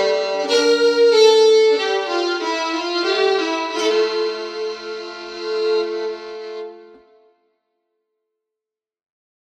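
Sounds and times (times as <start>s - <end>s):
Swedish bagpipe playing a polska: 0.0s - 7.2s.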